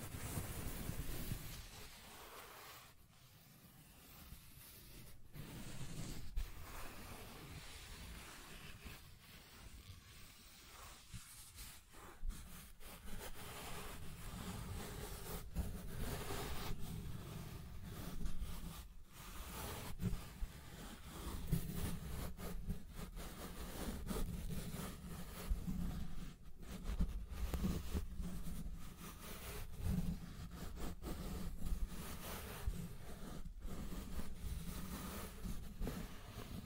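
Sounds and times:
scratching and tracing: 0.0s - 36.6s.

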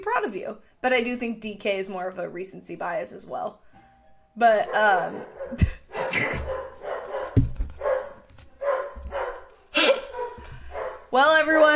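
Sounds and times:
speech: 0.0s - 3.6s, 4.4s - 6.6s, 11.1s - 11.7s
dog barking at people coming to the door: 4.6s - 11.1s.

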